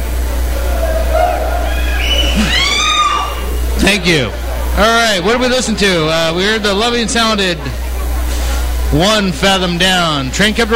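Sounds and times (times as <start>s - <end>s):
live audience cheering and hollering: 0.0s - 8.8s
low hum: 0.0s - 10.4s
laughter: 0.1s - 8.9s
sharp rising whoops and whistles: 0.9s - 3.7s
speech: 4.0s - 7.8s, 8.9s - 10.7s.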